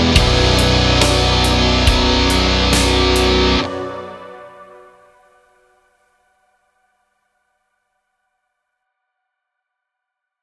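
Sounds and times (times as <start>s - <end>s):
backing track for guitar solo: 0.0s - 4.9s.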